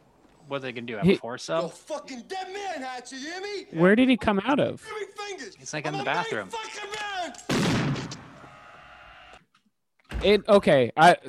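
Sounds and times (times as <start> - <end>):
speech: 0.5 - 7.5, 10.2 - 11.2
gunshot in a film scene: 7.4 - 8.5.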